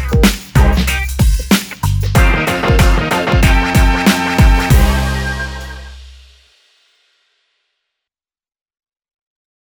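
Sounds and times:
retro hip-hop music: 0.0 - 6.2.

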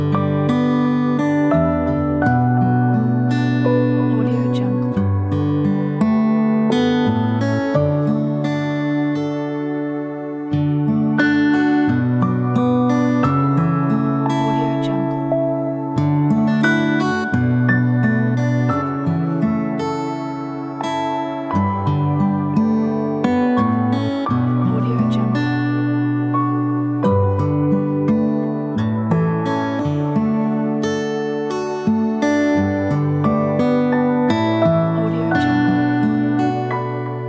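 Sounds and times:
melodic peaceful smooth guitar: 0.0 - 37.2.

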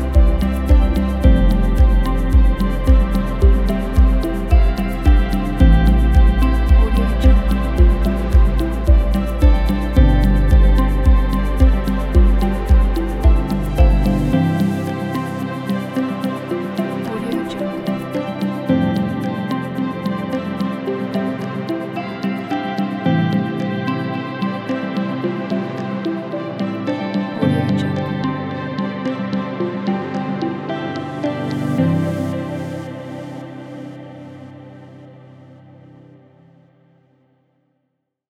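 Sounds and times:
inspiring minimal ambient music: 0.0 - 37.1.

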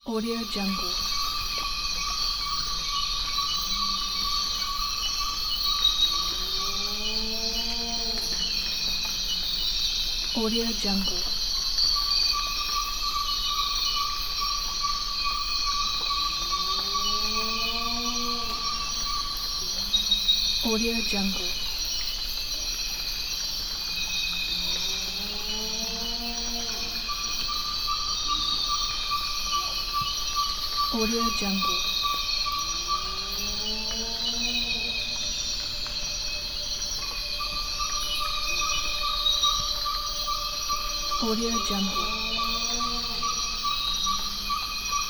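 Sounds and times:
jungle ambience: 0.0 - 45.0.

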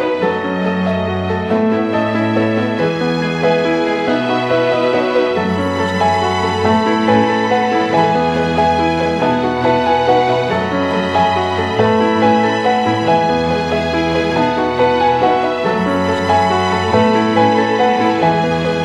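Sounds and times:
modern classical piano: 0.0 - 18.8
modern classical strings: 0.0 - 18.8.

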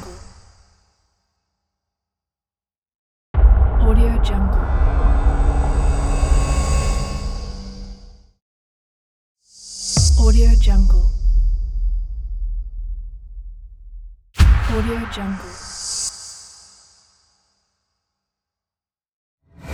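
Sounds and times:
cinematic impacts: 3.4 - 8.2, 10.0 - 15.9.

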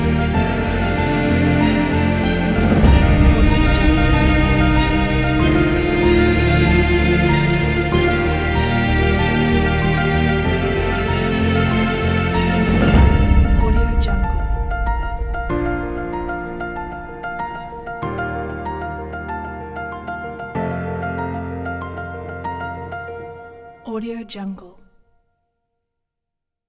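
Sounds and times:
romantic piano and strings music: 0.0 - 24.6.

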